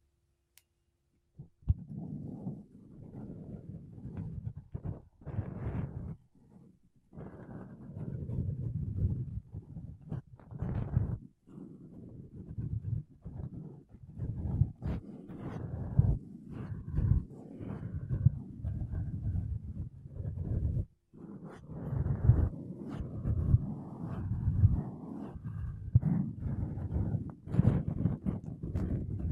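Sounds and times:
makeup brushes and sponge rubbing against a microphone: 1.7 - 29.2.

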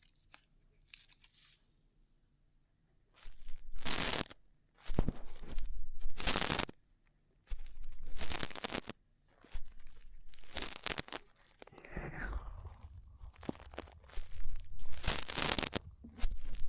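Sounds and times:
light scratchy clicks and crackles of ear cleaning: 3.2 - 11.8, 12.6 - 16.6
low rumble: 11.7 - 15.1.

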